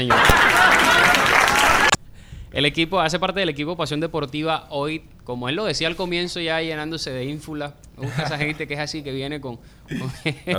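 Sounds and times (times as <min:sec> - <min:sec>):
speech: 0:00.0 - 0:00.5, 0:02.6 - 0:10.5
applause: 0:00.0 - 0:02.0
laughter: 0:00.0 - 0:10.5.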